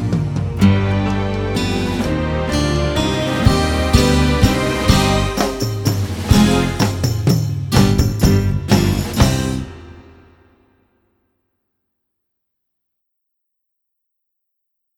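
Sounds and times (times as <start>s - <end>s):
solo accompaniment: 0.0s - 10.4s.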